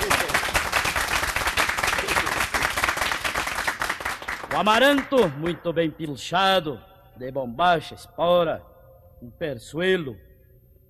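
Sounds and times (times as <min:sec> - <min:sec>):
audience applause: 0:00.0 - 0:05.3
speech: 0:04.6 - 0:10.3.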